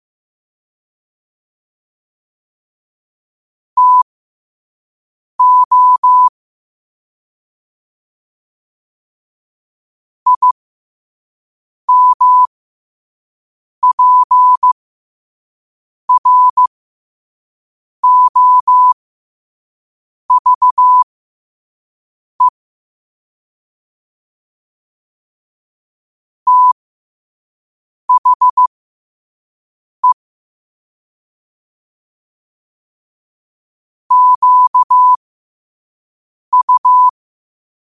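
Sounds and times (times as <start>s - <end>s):
morse code at 5 wpm: 3.8s - 4.0s, 5.4s - 6.3s, 10.3s - 10.6s, 11.9s - 12.5s, 13.8s - 14.8s, 16.1s - 16.7s, 18.0s - 19.0s, 20.3s - 21.1s, 26.5s - 26.8s, 28.1s - 28.7s, 34.1s - 35.2s, 36.5s - 37.1s.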